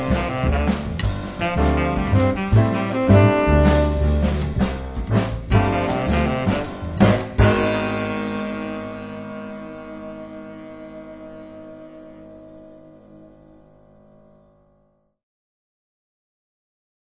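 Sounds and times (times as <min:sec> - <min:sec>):
funk music: 0:00.0 - 0:13.6.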